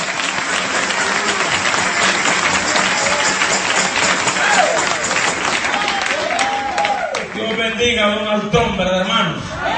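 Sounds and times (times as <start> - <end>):
weak audience applause: 0.0 - 7.8
speech: 7.8 - 9.6.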